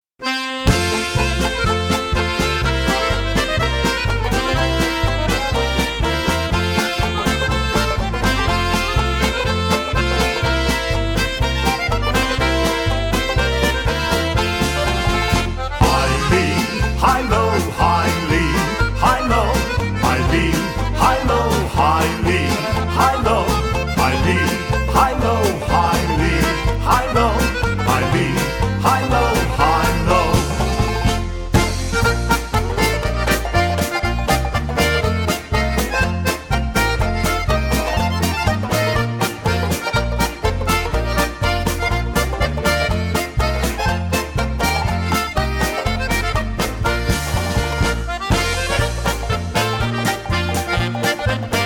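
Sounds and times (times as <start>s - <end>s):
polka music: 0.2s - 51.6s.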